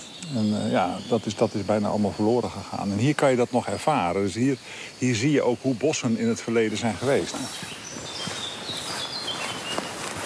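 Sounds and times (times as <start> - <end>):
blackcaps and garden warblers singing in a damp forest in July: 0.0 - 10.2
steady outdoor hiss: 0.0 - 10.2
speech: 0.2 - 7.8
soft crunching footsteps: 6.3 - 10.2.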